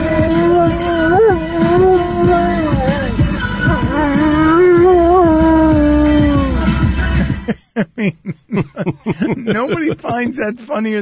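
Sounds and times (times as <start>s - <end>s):
dog howling: 0.0s - 6.7s
laughter: 7.1s - 11.0s
speech: 9.0s - 11.0s.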